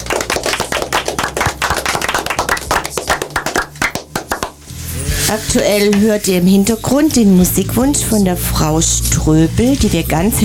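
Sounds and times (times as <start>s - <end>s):
small group applauding: 0.0s - 4.6s
speech: 5.3s - 10.4s.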